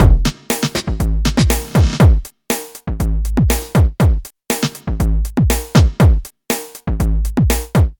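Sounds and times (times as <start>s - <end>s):
drum: 0.0s - 7.9s.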